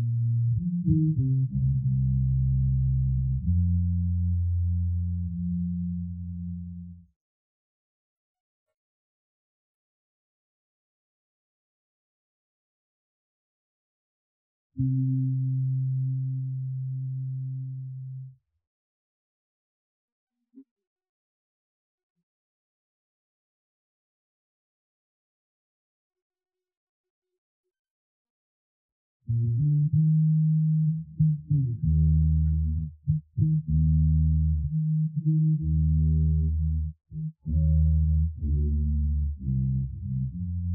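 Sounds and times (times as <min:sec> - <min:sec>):
bass: 0:00.0 - 0:07.1, 0:14.8 - 0:18.4, 0:29.3 - 0:40.7.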